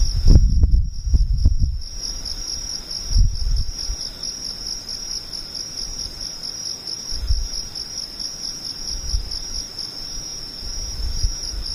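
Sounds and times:
low thumps and rumbles: 0.0 - 1.9, 3.1 - 3.8
insects buzzing: 0.0 - 11.7.

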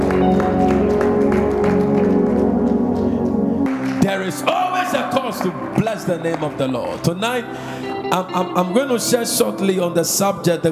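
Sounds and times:
audience clapping in rhythm: 0.0 - 7.7
keyboard or organ music: 0.0 - 10.7
speech: 5.3 - 10.7.

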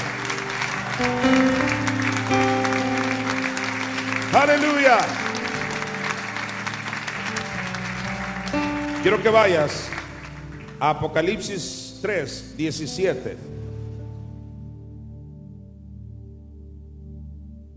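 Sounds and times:
audience applause: 0.0 - 11.4
sustained keyboard chords: 0.0 - 17.7
speech: 1.0 - 1.3, 4.4 - 5.2, 9.0 - 9.9, 10.8 - 13.6.

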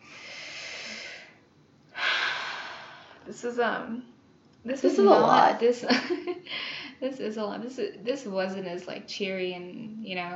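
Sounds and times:
deep breath taken slowly: 0.0 - 3.3
speech: 3.3 - 10.3.

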